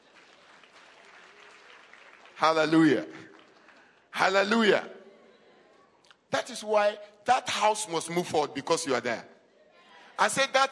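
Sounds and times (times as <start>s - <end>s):
audience clapping: 0.0s - 4.8s
speech: 2.4s - 3.3s, 4.2s - 5.0s, 6.4s - 9.4s, 10.2s - 10.7s.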